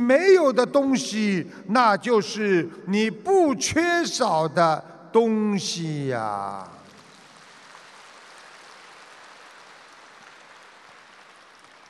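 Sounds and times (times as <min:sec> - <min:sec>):
speech: 0:00.1 - 0:06.8
audience clapping: 0:06.4 - 0:11.8.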